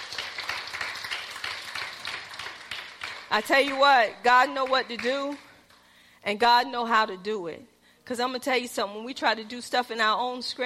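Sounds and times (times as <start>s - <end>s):
audience clapping hands in praise: 0.0s - 5.8s
speech: 3.3s - 5.5s, 6.2s - 10.6s.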